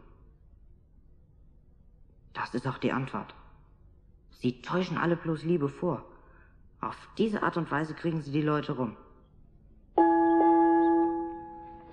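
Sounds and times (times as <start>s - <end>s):
speech: 2.4s - 3.4s, 4.4s - 6.1s, 6.8s - 9.0s
dinner gong: 10.0s - 11.9s.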